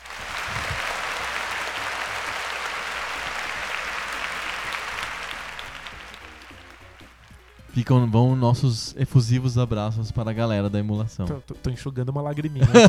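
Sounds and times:
crowd applause: 0:00.0 - 0:07.7
speech: 0:07.8 - 0:12.8
laughter: 0:12.6 - 0:12.8.

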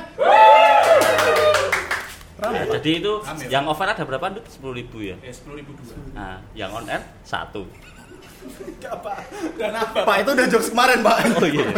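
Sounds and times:
crowd cheering: 0:00.0 - 0:02.7
audience clapping: 0:00.5 - 0:02.7
speech: 0:02.6 - 0:11.7
laughter: 0:07.7 - 0:11.7.

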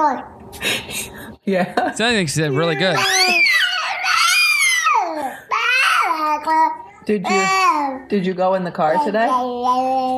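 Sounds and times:
speech: 0:00.0 - 0:03.4, 0:06.4 - 0:10.1
toddler babbling gibberish: 0:02.5 - 0:08.1, 0:08.9 - 0:10.1.

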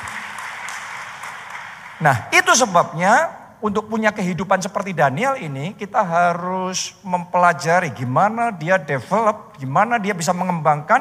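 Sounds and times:
audience applause: 0:00.0 - 0:02.3
speech: 0:02.0 - 0:10.9.

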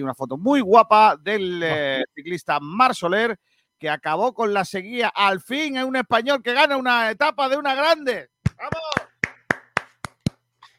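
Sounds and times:
speech: 0:00.0 - 0:08.8
hand claps: 0:08.4 - 0:10.4.

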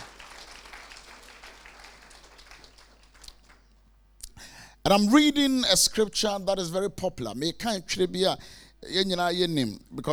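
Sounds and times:
audience applause: 0:00.0 - 0:03.6
speech: 0:04.8 - 0:10.1.

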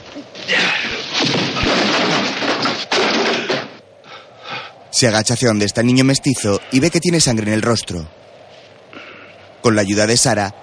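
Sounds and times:
man falling to the ground: 0:00.0 - 0:03.8
speech: 0:00.2 - 0:00.8, 0:05.0 - 0:08.3, 0:09.6 - 0:10.6
man thrown against a barrel: 0:00.7 - 0:03.8.

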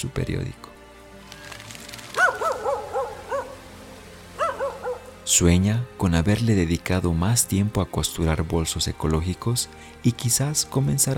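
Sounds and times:
speech: 0:00.0 - 0:00.6, 0:05.3 - 0:11.1
small dog yipping: 0:02.2 - 0:03.6, 0:04.4 - 0:05.0.

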